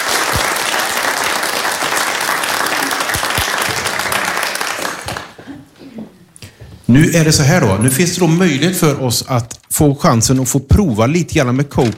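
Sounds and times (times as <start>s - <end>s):
audience applause: 0.0s - 5.5s
speech: 6.9s - 11.9s.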